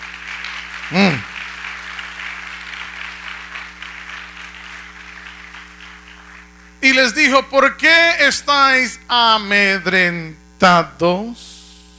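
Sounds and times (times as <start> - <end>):
audience applause: 0.0 - 6.8
speech: 0.9 - 1.3, 7.0 - 11.6
person whooping: 0.9 - 1.4.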